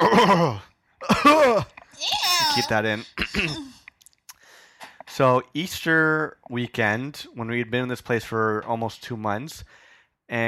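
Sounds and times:
throat clearing: 0.0s - 1.7s, 3.1s - 3.8s
speech: 0.2s - 3.8s, 5.2s - 10.4s.

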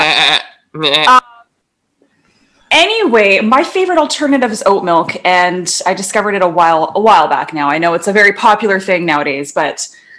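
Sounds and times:
person imitating a sheep bleating: 0.0s - 1.2s
speech: 0.7s - 1.2s, 2.7s - 10.0s.

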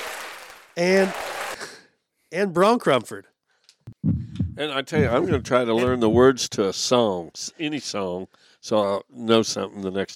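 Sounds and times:
canned applause from applause button: 0.0s - 1.8s
speech: 0.8s - 1.3s, 2.3s - 3.3s, 4.6s - 10.1s.

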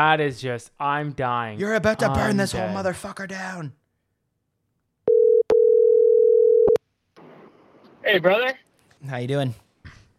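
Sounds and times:
speech: 0.0s - 3.8s, 8.0s - 9.6s
telephone ringing tone: 5.1s - 6.8s.

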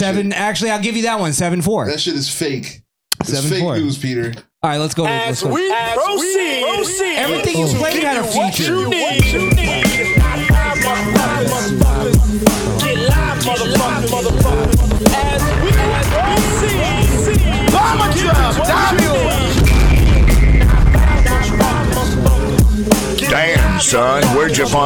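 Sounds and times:
speech: 0.0s - 10.2s, 23.3s - 24.8s
hip-hop beat: 5.0s - 24.8s.

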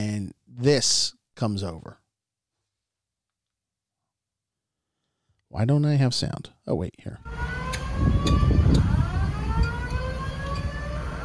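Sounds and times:
speech: 0.0s - 2.0s, 5.5s - 8.8s
hotel fire alarm siren: 7.2s - 11.2s.

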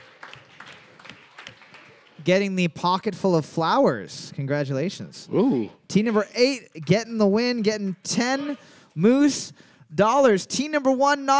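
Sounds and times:
light applause from a small group: 0.0s - 2.6s
speech: 2.2s - 11.3s.

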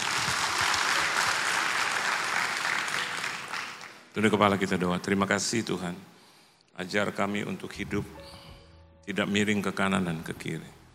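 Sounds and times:
loud audience applause: 0.0s - 4.0s
speech: 4.2s - 6.2s, 6.8s - 8.4s, 9.1s - 10.8s.

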